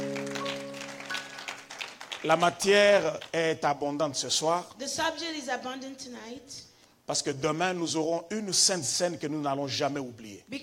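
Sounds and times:
audience applauding: 0.0s - 2.7s
speech: 2.2s - 10.6s.

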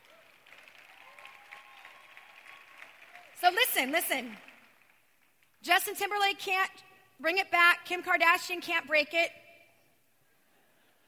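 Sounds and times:
audience clapping: 0.0s - 5.6s
speech: 3.4s - 4.5s, 5.6s - 9.4s.

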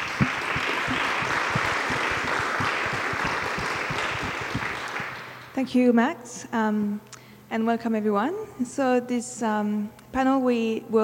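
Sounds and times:
audience applause welcoming guest speakers at an evening design panel: 0.0s - 5.5s
speech: 5.6s - 11.0s.

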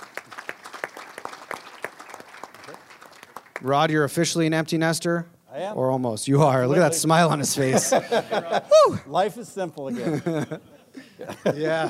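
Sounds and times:
audience applause: 0.0s - 3.8s
speech: 3.6s - 11.8s
laughter: 7.4s - 9.2s, 9.9s - 11.8s.

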